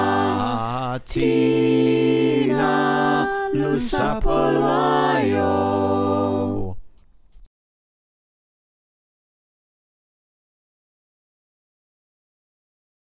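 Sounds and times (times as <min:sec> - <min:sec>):
soprano alto tenor bass choir singing: 0:00.0 - 0:06.7.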